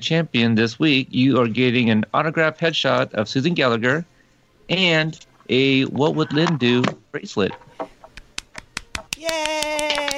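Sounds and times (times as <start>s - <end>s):
speech: 0.0s - 4.1s, 4.7s - 7.9s
hand clapping: 8.0s - 10.1s.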